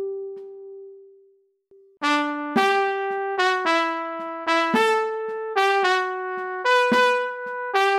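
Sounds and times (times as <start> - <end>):
single-voice MIDI fanfare: 2.0 - 7.9.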